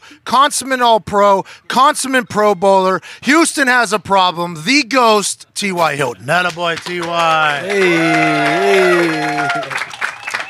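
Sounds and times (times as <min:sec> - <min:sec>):
speech: 0:00.3 - 0:10.0
small group of people clapping: 0:06.3 - 0:10.4
person shouting a drawn-out cheer: 0:07.6 - 0:09.8.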